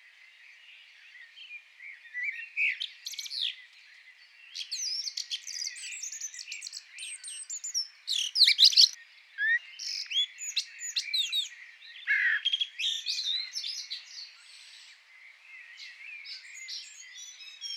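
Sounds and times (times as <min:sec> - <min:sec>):
Common blackbird Turdus merula singing warbled whistles and scratchy twittering: 0:00.9 - 0:17.7.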